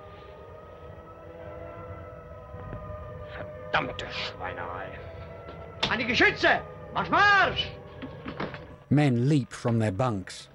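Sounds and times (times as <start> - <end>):
siren wailing: 0.0 - 8.8
speech: 3.7 - 5.1, 5.8 - 7.8, 8.9 - 10.5.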